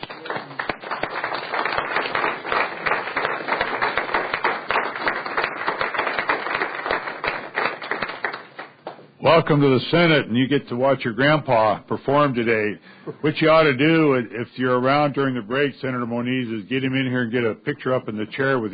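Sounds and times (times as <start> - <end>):
audience applause in a state Senate chamber greeting students and teachers: 0.0 - 8.8
speech: 9.3 - 18.7.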